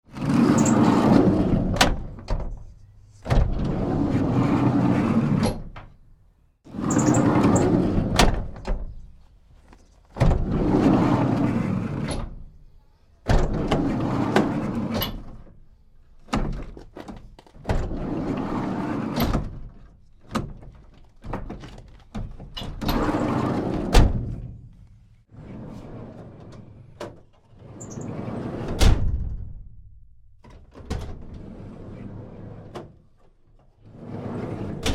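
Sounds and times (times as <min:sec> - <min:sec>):
medium size panel van side sliding door: 0:00.1 - 0:06.0, 0:06.7 - 0:09.1, 0:10.2 - 0:12.5, 0:13.3 - 0:15.6, 0:16.2 - 0:19.8, 0:21.4 - 0:24.6, 0:25.3 - 0:29.5, 0:30.6 - 0:33.1, 0:33.8 - 0:34.9.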